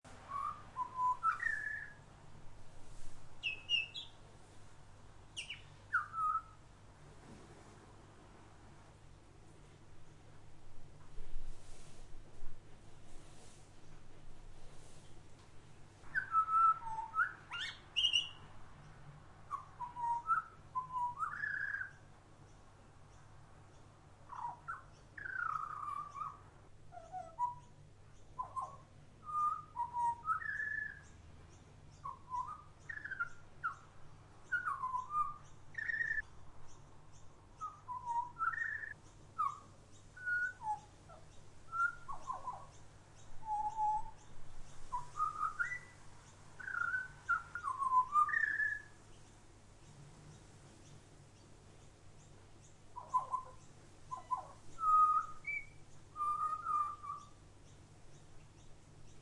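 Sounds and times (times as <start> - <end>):
butcherbird singing: 0.1 - 2.1, 3.3 - 4.2, 5.3 - 6.6, 16.0 - 59.1.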